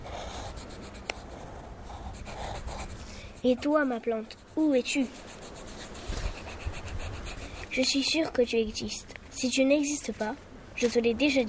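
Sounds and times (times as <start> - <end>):
drawing on paper: 0.0 - 8.2
speech: 3.4 - 5.3, 7.8 - 11.4.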